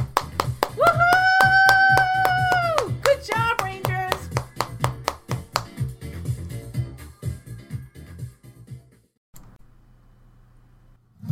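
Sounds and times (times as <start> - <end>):
audience applause for kids: 0.0 - 5.7.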